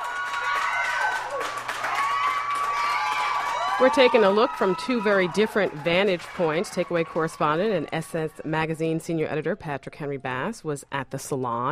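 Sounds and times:
scattered whoops and excited voices: 0.0s - 8.8s
small crowd cheering and clapping in Hairworks Salon: 0.0s - 9.0s
speech: 3.8s - 11.6s.

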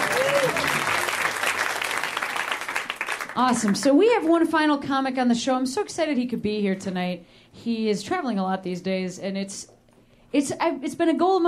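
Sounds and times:
audience applause: 0.0s - 3.7s
speech: 3.4s - 9.7s, 10.3s - 11.4s.

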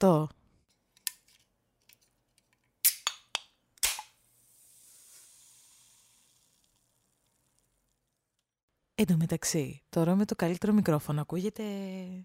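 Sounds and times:
speech: 0.0s - 0.4s, 9.0s - 12.2s
drink can being opened: 2.8s - 7.0s.

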